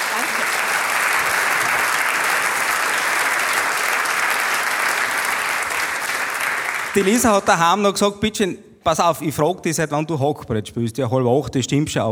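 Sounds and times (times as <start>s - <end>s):
audience applause: 0.0s - 7.7s
speech: 6.9s - 12.1s.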